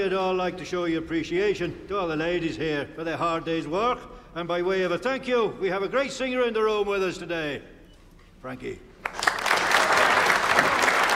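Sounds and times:
speech: 0.0 - 7.7, 8.4 - 8.9
polite applause from a gathered audience: 9.0 - 11.1.

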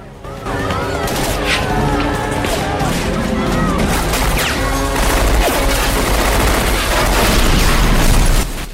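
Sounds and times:
voices: 0.0 - 6.0
soldiers' gunfire in a zombie attack scene: 3.8 - 8.7.

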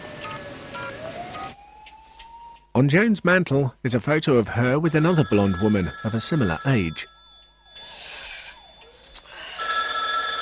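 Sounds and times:
speech: 2.8 - 7.2
telephone ringing: 4.9 - 10.4.

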